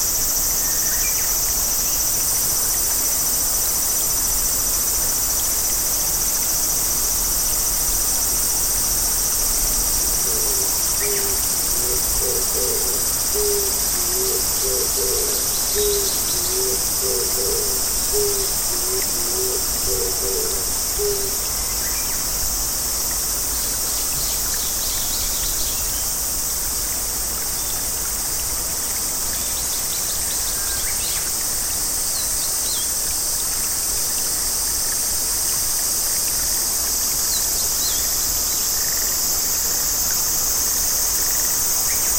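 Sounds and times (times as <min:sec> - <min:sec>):
summer cicadas droning in a Japanese garden: 0:00.0 - 0:42.1
low pulsing owl-like hoots: 0:10.2 - 0:21.4.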